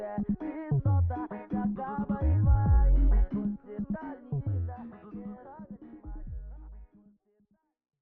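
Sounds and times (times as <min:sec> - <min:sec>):
deep bass: 0:00.7 - 0:01.2, 0:02.2 - 0:03.4, 0:04.3 - 0:04.7, 0:06.1 - 0:06.8.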